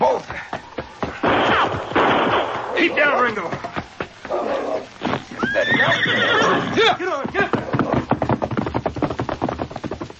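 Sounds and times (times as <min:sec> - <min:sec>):
hooves thudding: 0:00.0 - 0:10.1
horses neighing: 0:02.6 - 0:08.7.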